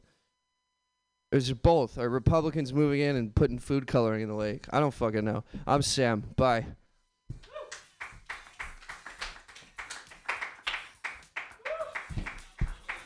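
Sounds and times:
speech: 1.3s - 7.5s
audience clapping: 7.7s - 13.0s.

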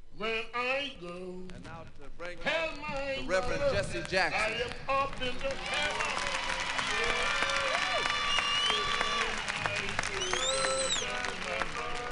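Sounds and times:
speech: 0.2s - 7.4s
audience clapping for a performer: 4.4s - 12.1s.

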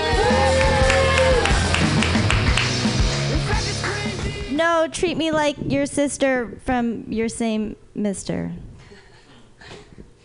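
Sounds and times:
crowd whooping and shouting: 0.0s - 2.6s
crowd applauding: 0.0s - 4.2s
speech: 4.9s - 8.7s.

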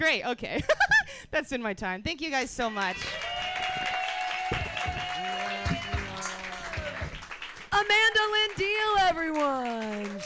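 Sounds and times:
speech: 0.0s - 3.2s, 7.8s - 10.2s
audience applause after comedy set: 2.8s - 10.2s.

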